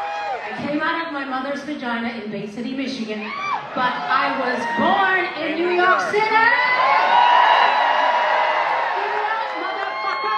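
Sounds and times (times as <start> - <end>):
crowd cheering and whooping: 0.0 - 0.7, 3.2 - 5.3, 5.9 - 10.3
speech: 0.7 - 7.2.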